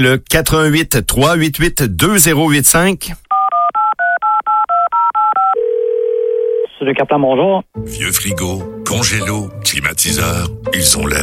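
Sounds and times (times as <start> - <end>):
speech: 0.0 - 3.2, 6.8 - 11.2
telephone keypad dialing tones: 3.3 - 6.7.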